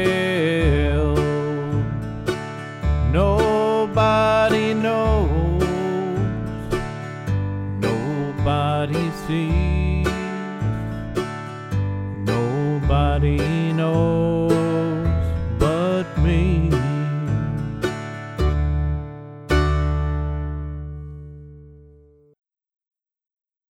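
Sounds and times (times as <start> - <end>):
person singing in the key of D: 0.0 - 11.4, 12.1 - 18.1
backing track in the key of D: 0.0 - 22.2.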